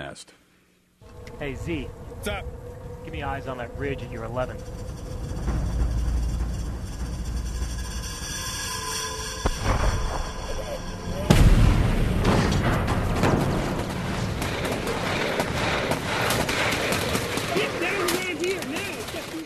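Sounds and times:
speech: 0.0 - 0.4, 1.4 - 5.0
steady rumbling fire from an airstrike: 1.0 - 19.4
airstrike blast on an enemy position: 9.4 - 17.6
rapid bursts of gunshots: 11.3 - 19.4.

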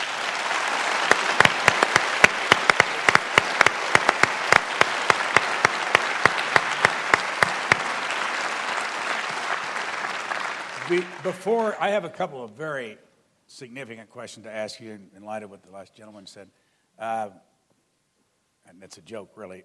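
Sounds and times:
audience applause: 0.0 - 11.8
speech: 10.9 - 17.5, 18.6 - 19.6.

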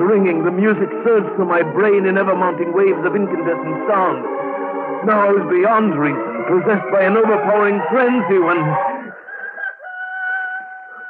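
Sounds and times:
speech: 0.1 - 4.4, 5.0 - 8.9
rooster crowing: 8.7 - 11.0.

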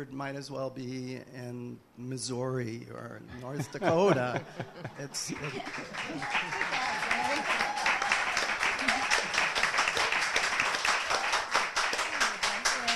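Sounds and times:
speech: 0.0 - 7.7
laughter: 3.4 - 7.5
audience applause: 5.2 - 12.9.

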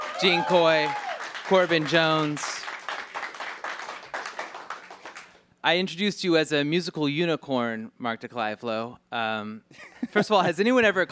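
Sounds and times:
clapping for a band's members: 0.0 - 5.4
speech: 0.2 - 2.5, 5.6 - 11.1.

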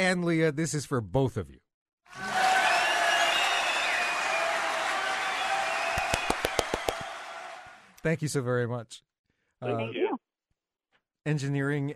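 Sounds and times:
speech: 0.0 - 2.3, 8.0 - 10.2, 11.2 - 11.9
audience applause: 2.1 - 8.0.

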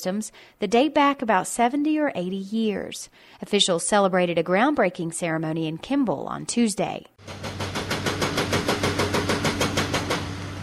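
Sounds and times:
speech: 0.0 - 7.6
backhoe and construction vehicle hammering on rock: 7.2 - 10.3
low engine drone of heavy machinery: 9.6 - 10.6.

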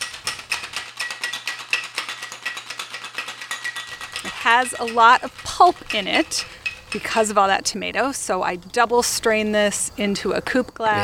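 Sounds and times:
cocktail shaken with ice in shaker: 0.0 - 8.4
speech: 4.4 - 11.0.

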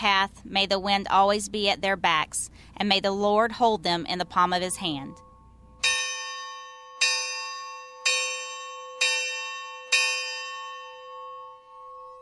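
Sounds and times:
speech: 0.0 - 5.3
memorial bell struck for last alarm: 4.8 - 12.2.

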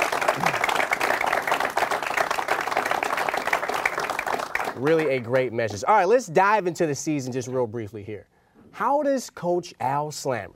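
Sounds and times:
hand clapping: 0.0 - 5.2
speech: 4.8 - 10.5.

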